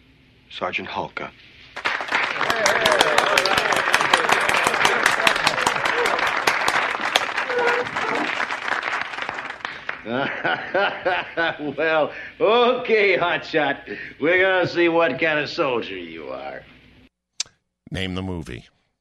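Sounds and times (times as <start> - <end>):
speech: 0.5 - 1.6, 10.0 - 16.7, 17.9 - 18.8
round of applause: 1.8 - 10.3
laughter: 2.1 - 8.6, 9.8 - 12.3.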